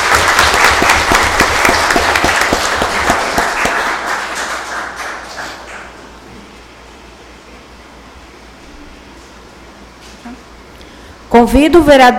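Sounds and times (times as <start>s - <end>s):
audience applause: 0.0s - 6.1s
speech: 11.4s - 12.1s.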